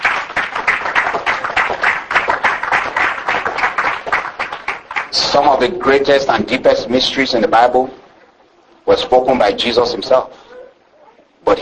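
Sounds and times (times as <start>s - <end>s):
audience applause: 0.0s - 5.7s
speech: 5.4s - 8.0s, 8.9s - 10.4s.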